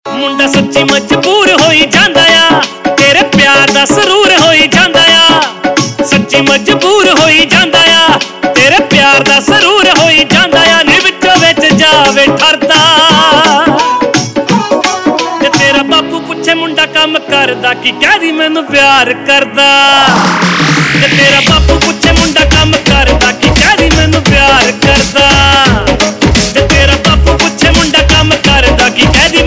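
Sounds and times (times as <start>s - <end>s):
Punjabi pop ringtone: 0.1s - 29.4s.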